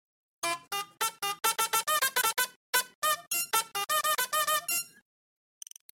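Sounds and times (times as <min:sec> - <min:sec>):
harsh horn honk: 0:00.4 - 0:04.9.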